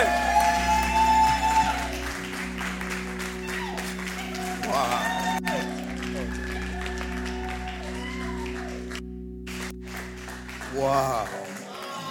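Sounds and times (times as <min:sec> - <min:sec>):
crowd voices and shouts: 0:00.0 - 0:02.3, 0:03.4 - 0:09.0, 0:10.7 - 0:12.0
sustained musical hum: 0:00.0 - 0:11.6
congregation applauding at a church service: 0:00.0 - 0:12.0.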